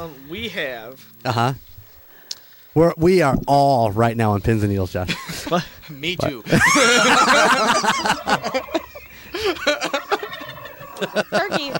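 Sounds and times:
speech: 0:00.0 - 0:01.7, 0:02.8 - 0:08.8, 0:11.0 - 0:11.7
laughter: 0:05.1 - 0:05.8, 0:06.4 - 0:11.7
turkey gobbling: 0:08.2 - 0:11.2.

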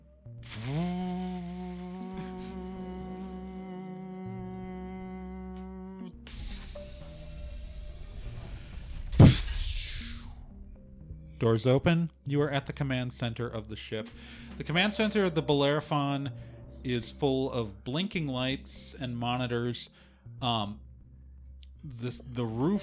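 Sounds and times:
sci-fi lift transport mechanism whine and hum: 0:00.0 - 0:11.4
speech: 0:00.4 - 0:01.0, 0:11.4 - 0:20.8, 0:21.8 - 0:22.8
burst of hiss: 0:00.4 - 0:05.1, 0:06.3 - 0:10.5.

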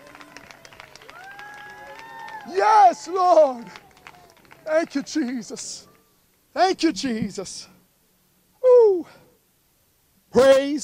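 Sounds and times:
audience clapping hands: 0:00.0 - 0:06.0
speech: 0:02.4 - 0:03.8, 0:04.7 - 0:05.9, 0:06.6 - 0:07.7, 0:10.4 - 0:10.8.

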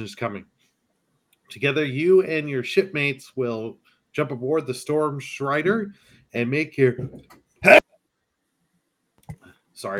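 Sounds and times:
speech: 0:00.0 - 0:00.6, 0:01.5 - 0:07.9, 0:09.8 - 0:09.9
sneeze: 0:07.6 - 0:07.8.

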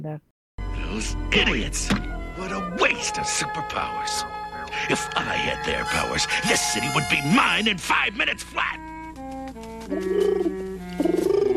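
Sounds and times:
speech: 0:00.0 - 0:00.3, 0:00.9 - 0:08.9, 0:09.9 - 0:11.2
dove cooing: 0:09.7 - 0:11.5.

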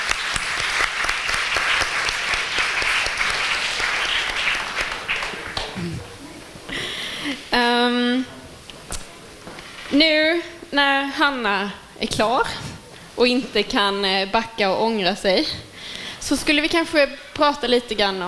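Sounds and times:
audience applause: 0:00.0 - 0:07.2
speech: 0:10.0 - 0:18.2.

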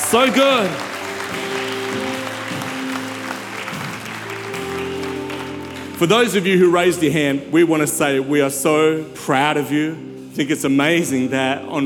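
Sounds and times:
large audience applause: 0:00.0 - 0:06.8
sustained organ or keyboard tones: 0:00.0 - 0:11.8
speech: 0:00.1 - 0:01.6, 0:06.0 - 0:11.8.

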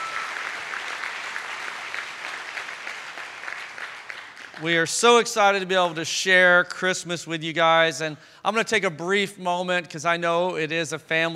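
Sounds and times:
crowd applauding: 0:00.0 - 0:05.0
speech: 0:04.6 - 0:11.3.

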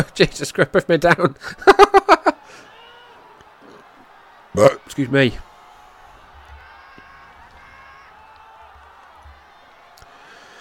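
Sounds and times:
speech: 0:00.0 - 0:02.2, 0:04.5 - 0:05.5
laughter: 0:01.0 - 0:02.8
wrestling crowd chanting: 0:02.5 - 0:10.0.

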